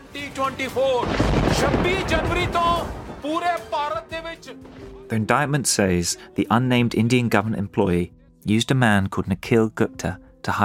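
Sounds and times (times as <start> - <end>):
speech: 0.4 - 10.6
thunder: 1.0 - 3.2.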